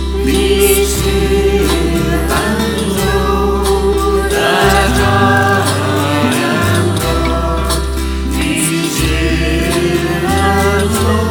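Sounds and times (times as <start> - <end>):
choir singing: 0.2 - 11.2.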